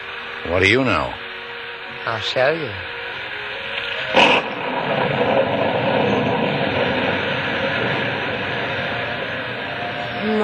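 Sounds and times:
speech: 0.4s - 1.2s, 2.0s - 3.0s
pouring rain: 3.6s - 10.4s.

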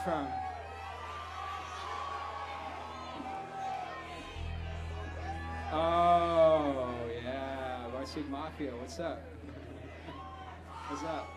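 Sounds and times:
speech: 0.0s - 0.4s, 5.7s - 6.3s, 8.2s - 9.6s, 10.9s - 11.3s
crowd shrieking and yelling: 0.0s - 11.3s
low rumble: 4.2s - 7.6s.

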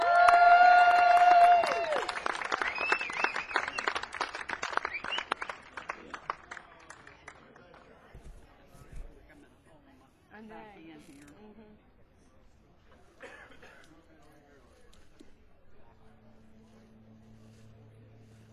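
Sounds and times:
audience applauding and cheering a band's welcome at a North Carolina show: 0.0s - 7.9s.

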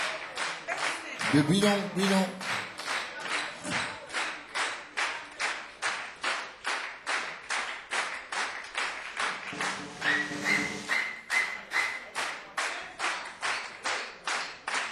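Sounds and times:
audience clapping in unison for encore: 0.0s - 14.8s
speech: 1.3s - 2.5s
sustained high whistle: 9.8s - 12.1s.

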